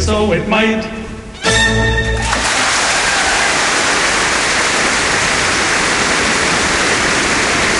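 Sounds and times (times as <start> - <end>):
speech: 0.0 - 2.0
thunderous applause after a concert: 2.2 - 7.7.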